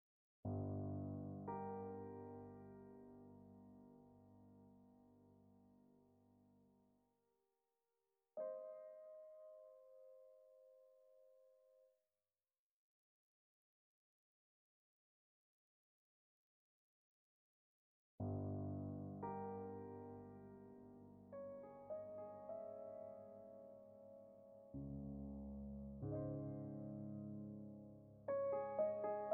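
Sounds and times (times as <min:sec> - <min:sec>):
music: 0:00.5 - 0:07.2, 0:08.4 - 0:12.0, 0:18.2 - 0:29.3.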